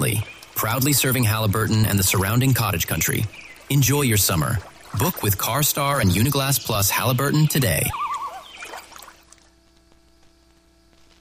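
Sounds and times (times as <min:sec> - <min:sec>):
speech: 0:00.0 - 0:08.0
water trickling: 0:00.0 - 0:09.6
canoe paddle swishing through water: 0:03.4 - 0:05.5, 0:08.0 - 0:09.4.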